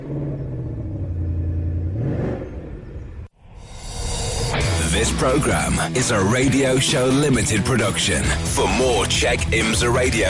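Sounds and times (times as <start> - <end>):
naturally aspirated V8 engine starting up and revving: 0.0 - 3.4
speech: 5.0 - 10.2.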